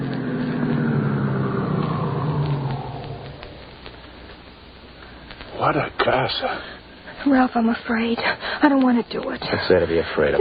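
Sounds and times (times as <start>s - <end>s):
car pulling up and stopping: 0.0s - 5.8s
speech: 5.7s - 10.3s.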